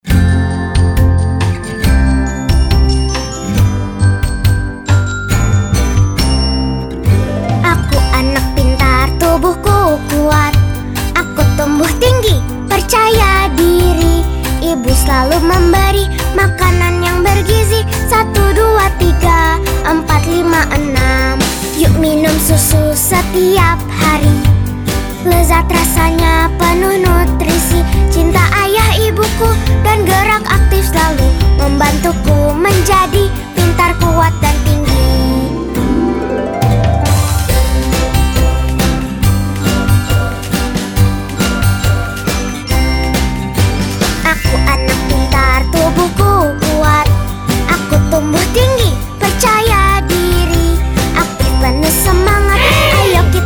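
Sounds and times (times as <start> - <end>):
jingle: 0.1 - 24.4, 25.2 - 53.4.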